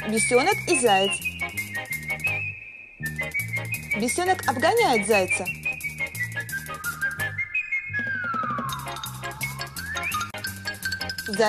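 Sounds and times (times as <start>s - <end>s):
speech: 0.1s - 1.5s, 3.0s - 5.6s, 11.3s - 11.4s
person whistling a starting signal for a race: 0.2s - 10.4s.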